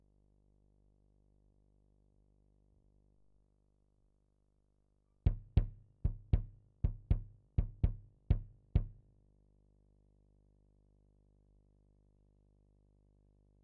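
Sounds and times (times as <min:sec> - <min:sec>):
kick drum: 0:05.2 - 0:09.0.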